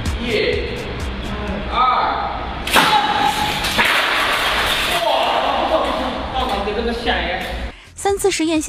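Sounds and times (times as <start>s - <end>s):
falling ceiling fan crashing down in a test: 0.0s - 7.6s
speech: 8.2s - 8.6s.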